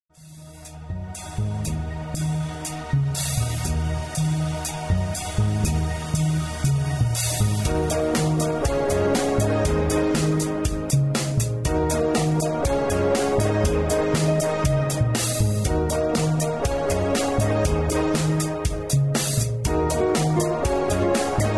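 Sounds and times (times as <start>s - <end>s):
game music: 0.2s - 21.5s.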